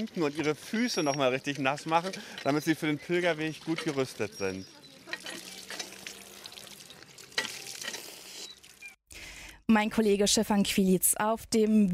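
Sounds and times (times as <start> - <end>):
speech: 0.0 - 4.8, 9.7 - 11.9
fresh water of an old healing spring bubbling: 5.0 - 9.0.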